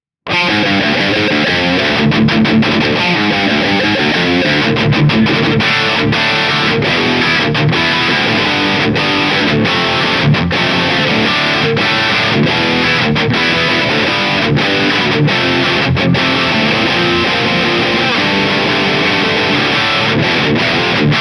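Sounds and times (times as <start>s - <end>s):
metal music: 0.3s - 21.1s.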